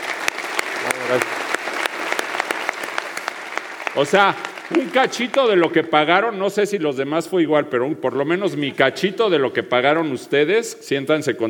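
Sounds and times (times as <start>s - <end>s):
audience applause: 0.0s - 6.2s
speech: 1.1s - 1.4s, 4.0s - 11.4s.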